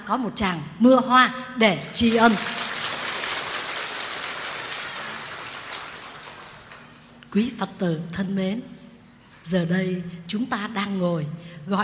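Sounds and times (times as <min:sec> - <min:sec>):
speech: 0:00.1 - 0:02.7, 0:07.3 - 0:08.8, 0:09.4 - 0:11.8
crowd applause: 0:02.1 - 0:07.2.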